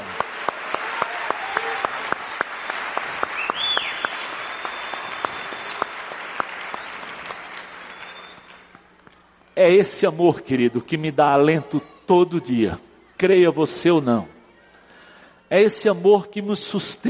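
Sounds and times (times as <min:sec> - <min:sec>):
audience applauding loudly: 0:00.0 - 0:09.4
speech: 0:09.6 - 0:14.4, 0:15.5 - 0:17.0.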